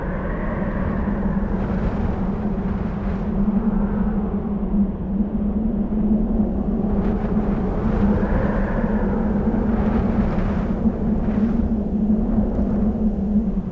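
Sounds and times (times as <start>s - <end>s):
gusty wind on a desert plain: 0.0s - 13.6s.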